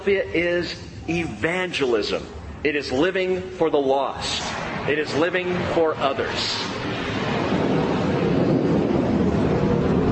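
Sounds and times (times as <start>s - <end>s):
speech: 0.0s - 6.8s
airplane passing close overhead: 0.0s - 10.1s.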